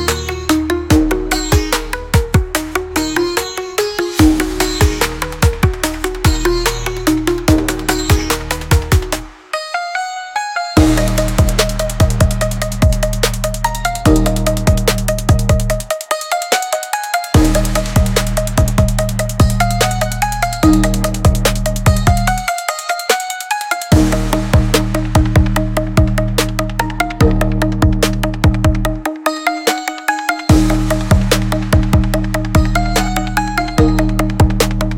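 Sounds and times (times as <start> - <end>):
hi-hats: 0.0 - 9.6, 10.8 - 34.9.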